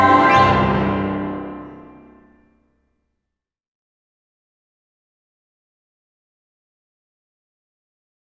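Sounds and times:
choir singing a Christmas carol: 0:00.0 - 0:02.2.

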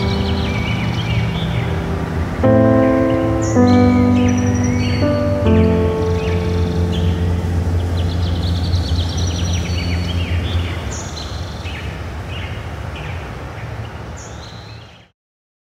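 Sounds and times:
continuous low rumble: 0:00.0 - 0:11.3
bird song: 0:00.0 - 0:15.1.

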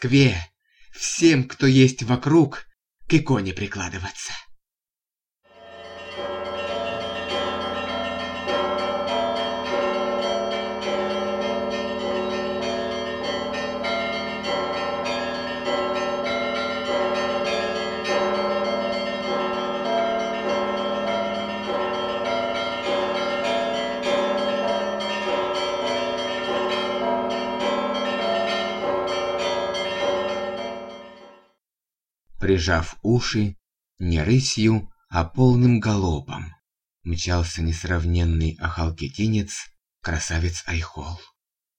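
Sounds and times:
speech: 0:00.0 - 0:04.4, 0:32.5 - 0:41.3
church bells ringing a festive peal across Moscow: 0:05.5 - 0:31.5.

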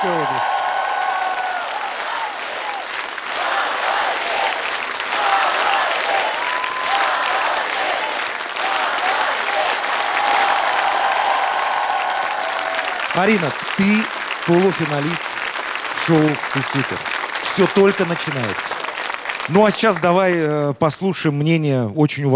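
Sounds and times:
speech: 0:00.0 - 0:00.6, 0:13.2 - 0:15.3, 0:16.0 - 0:18.7, 0:19.5 - 0:22.3
faint cheering or voices: 0:00.0 - 0:15.2
enthusiastic audience applause: 0:00.0 - 0:20.6.

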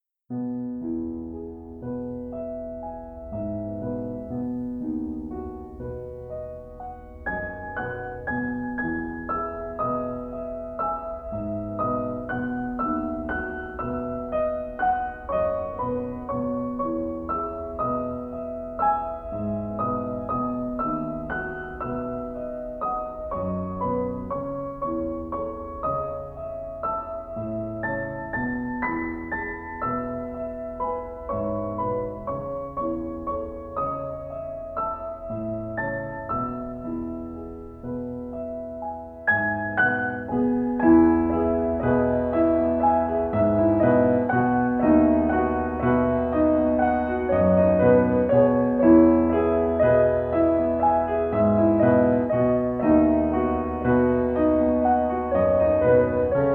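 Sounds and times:
calming piano music: 0:00.0 - 0:56.5.

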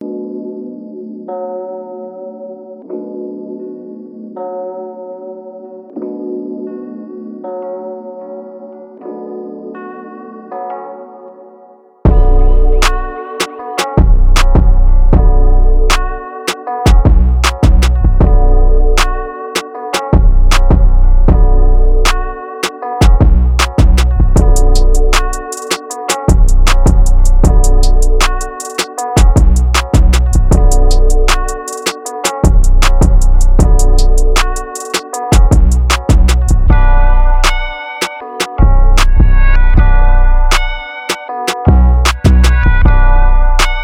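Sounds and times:
boosted bass: 0:12.1 - 0:13.1, 0:14.0 - 0:16.2, 0:16.9 - 0:19.3, 0:20.2 - 0:22.4, 0:23.0 - 0:25.4, 0:26.3 - 0:28.5, 0:29.2 - 0:31.6, 0:32.4 - 0:34.7, 0:35.3 - 0:37.8, 0:38.6 - 0:40.8, 0:41.7 - 0:43.8.

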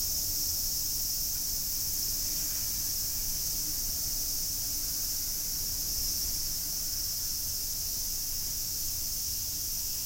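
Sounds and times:
cicada drone: 0:00.0 - 0:10.0.

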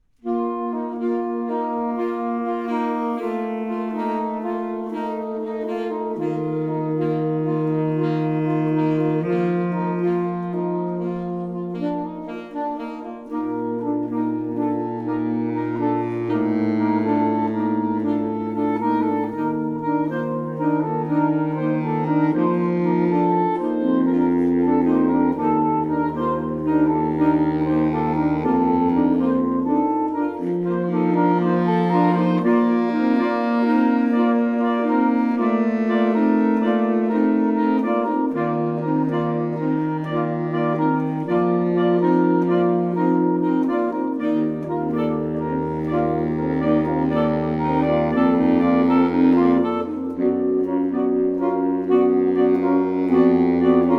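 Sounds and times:
saxophone quartet playing a lilting sarabande: 0:00.0 - 0:53.9.

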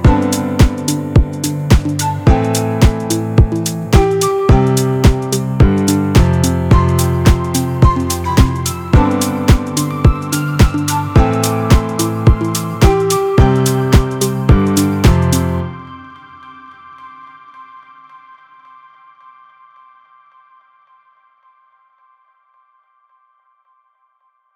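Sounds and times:
happy background deep house music: 0:00.0 - 0:16.1.

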